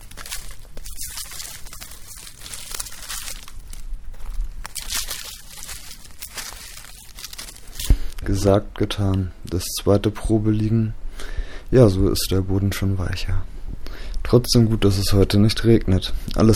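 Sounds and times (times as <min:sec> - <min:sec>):
dry leaves being scooped and shuffled: 0:00.0 - 0:08.5
speech: 0:08.4 - 0:11.0, 0:11.7 - 0:13.5, 0:14.3 - 0:16.5.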